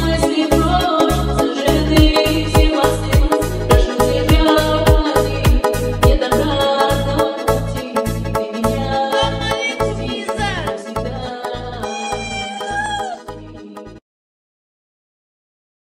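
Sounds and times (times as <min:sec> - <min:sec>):
lezginka dance music: 0:00.0 - 0:06.7, 0:07.5 - 0:13.4.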